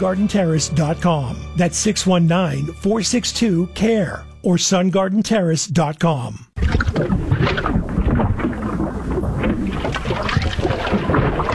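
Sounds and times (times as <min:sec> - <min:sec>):
speech: 0:00.0 - 0:08.6
clogged drain gurgling: 0:06.6 - 0:11.5.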